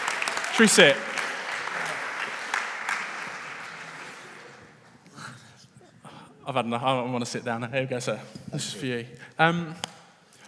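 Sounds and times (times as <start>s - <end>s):
audience applause: 0.0s - 4.9s
speech: 0.6s - 1.1s, 6.5s - 9.9s.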